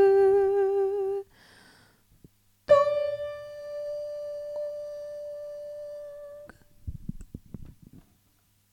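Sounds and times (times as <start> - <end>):
tenor singing: 0.0 - 1.3, 2.7 - 6.5.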